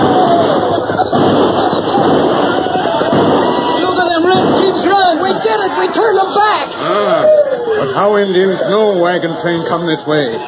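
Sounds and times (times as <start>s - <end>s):
blasting powder explosions in a loud roar of crackling, thudding blasts: 0.0s - 6.9s
laughter: 0.0s - 10.4s
speech: 8.0s - 10.4s.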